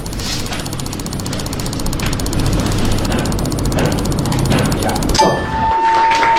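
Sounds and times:
extremely rapid computer mouse clicking: 0.0 - 5.4
clear tone: 4.1 - 6.3.

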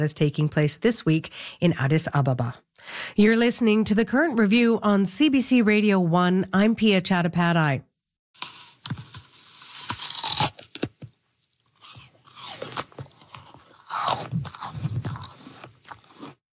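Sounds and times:
speech: 0.0 - 9.0
person biting into a crispy crunchy apple: 8.4 - 16.4.

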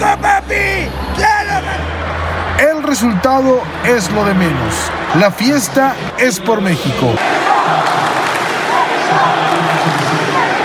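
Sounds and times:
crowd of fans roaring and shouting: 0.0 - 10.6
speech: 2.9 - 7.9.

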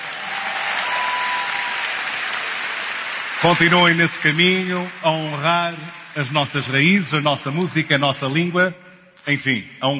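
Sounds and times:
audience applause for winners: 0.0 - 6.4
speech: 3.4 - 9.9.

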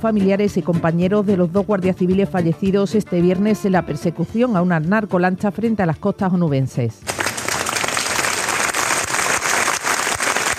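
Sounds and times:
speech: 0.0 - 7.3
crowd applauding at funeral at the iglesia de la Concepción: 7.1 - 10.5.

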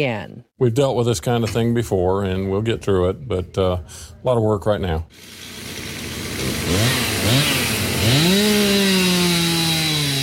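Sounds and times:
speech: 0.0 - 5.4
chainsaw cutting fallen trees: 5.2 - 10.2.

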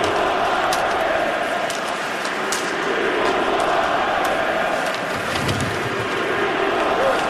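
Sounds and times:
hockey arena crowd chanting a player's name: 0.0 - 7.2.

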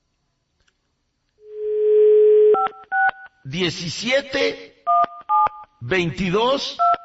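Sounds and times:
phone line dial tone: 1.4 - 3.1
speech: 3.4 - 4.7, 5.8 - 6.9.

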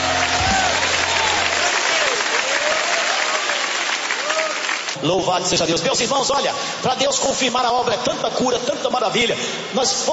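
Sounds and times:
audience clapping in praise: 0.0 - 5.0
speech: 5.0 - 10.1.

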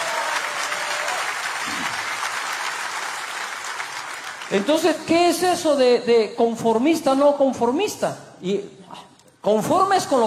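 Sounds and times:
audience applause: 0.0 - 4.8
speech: 4.5 - 10.2.

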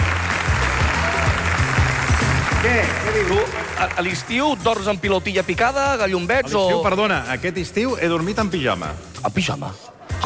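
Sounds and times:
crowd applauding: 0.0 - 5.7
speech: 2.7 - 10.2.

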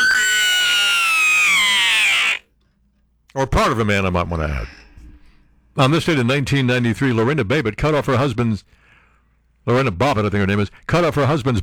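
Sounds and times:
man screaming: 0.0 - 2.4
speech: 3.4 - 4.8, 5.8 - 8.8, 9.6 - 11.6.

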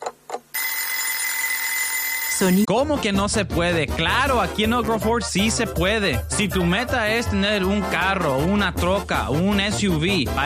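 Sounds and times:
alarm clock ringing: 0.6 - 2.7
speech: 2.4 - 10.4.

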